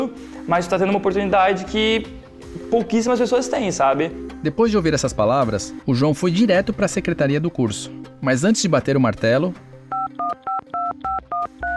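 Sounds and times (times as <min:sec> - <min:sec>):
speech: 0:00.1 - 0:09.7
touch-tone beeps of a phone number being dialed: 0:09.9 - 0:11.7.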